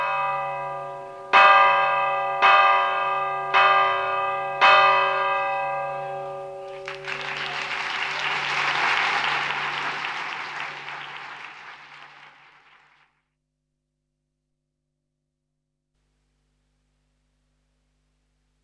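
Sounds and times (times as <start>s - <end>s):
church bells ringing for confession: 0.0s - 9.6s.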